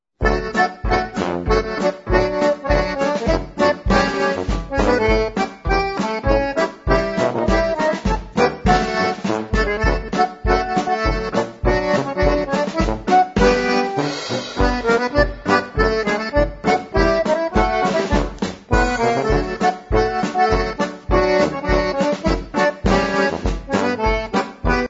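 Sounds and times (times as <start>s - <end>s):
polka music: 0.2s - 24.8s.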